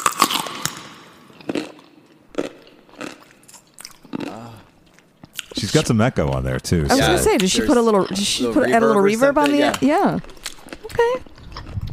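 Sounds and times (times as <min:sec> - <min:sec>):
crunchy bite into a pickle: 0:00.0 - 0:05.6, 0:09.5 - 0:11.9
wet squelching chewing of a pickle: 0:00.0 - 0:05.6, 0:07.0 - 0:11.9
speech: 0:05.6 - 0:10.4.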